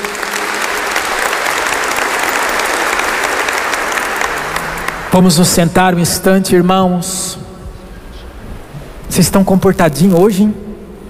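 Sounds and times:
audience applause: 0.0 - 5.6
speech: 5.2 - 7.4, 9.2 - 10.6.

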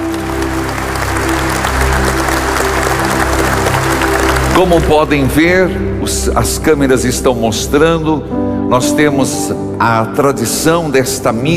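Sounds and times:
audience applause: 0.0 - 5.5
speech: 4.6 - 11.5.

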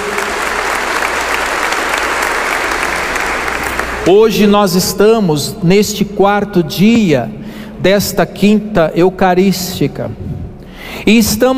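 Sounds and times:
audience applause: 0.0 - 4.1
speech: 4.0 - 10.3, 11.0 - 11.5.

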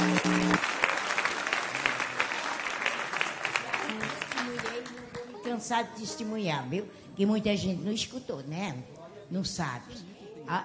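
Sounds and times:
audience applause: 0.0 - 5.0
speech: 5.6 - 10.6.

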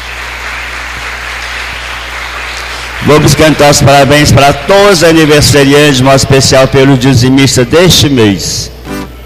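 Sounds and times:
audience applause: 0.0 - 4.3
speech: 3.1 - 8.9.

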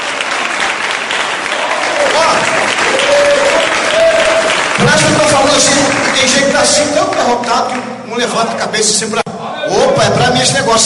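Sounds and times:
church audience applause: 0.0 - 7.8
speech: 5.0 - 10.8.

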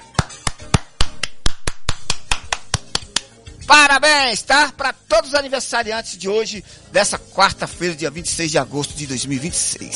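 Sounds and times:
single person clapping: 0.0 - 3.4
speech: 3.7 - 9.9.

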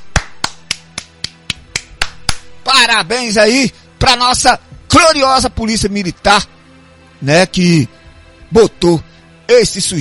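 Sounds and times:
person clapping in applause: 0.0 - 2.6
speech: 2.8 - 6.5, 7.2 - 9.9.

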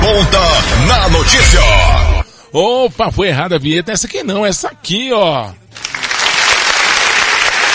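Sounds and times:
speech: 0.1 - 5.9
applause sound effect in a call-in news programme: 5.7 - 7.7.

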